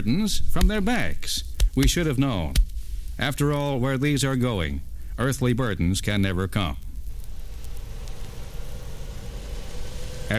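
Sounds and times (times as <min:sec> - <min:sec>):
speech: 0:00.0 - 0:06.9
airplane engines starting up: 0:07.1 - 0:10.3.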